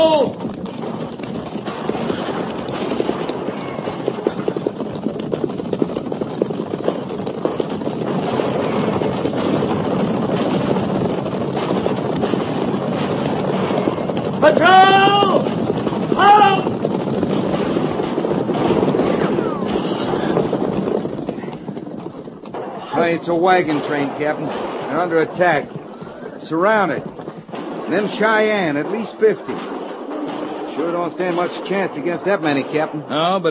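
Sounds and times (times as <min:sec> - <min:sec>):
horses galloping: 0:00.0 - 0:33.4
horse whinnies: 0:03.2 - 0:04.5, 0:19.1 - 0:20.5
speech: 0:23.4 - 0:25.8, 0:26.5 - 0:27.1, 0:27.9 - 0:29.7, 0:30.8 - 0:33.4.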